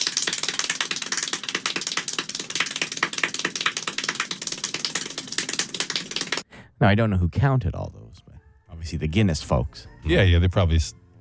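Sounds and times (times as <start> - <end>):
extremely rapid hand clapping from a world-record run: 0.0 - 6.5
speech: 6.8 - 8.0, 8.9 - 11.0.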